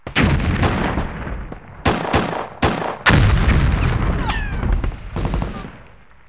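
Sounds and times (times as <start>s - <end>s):
military battle ambience: 0.0s - 6.2s.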